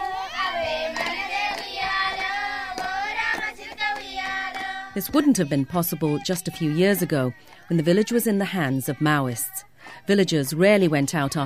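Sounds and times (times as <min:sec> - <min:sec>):
girls clapping hands while dancing: 0:00.0 - 0:05.3, 0:06.2 - 0:07.8
girls singing a bright melody together: 0:00.0 - 0:11.4
speech: 0:05.0 - 0:11.4.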